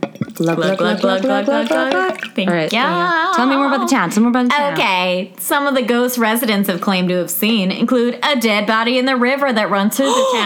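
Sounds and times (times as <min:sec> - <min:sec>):
rosé wine pouring into a glass: 0:00.0 - 0:04.2
speech: 0:00.4 - 0:10.4.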